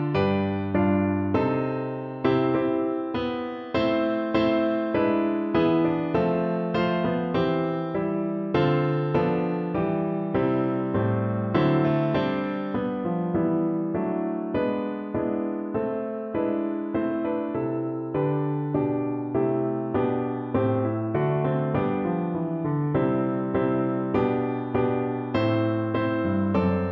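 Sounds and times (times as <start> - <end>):
piano: 0.0 - 26.8.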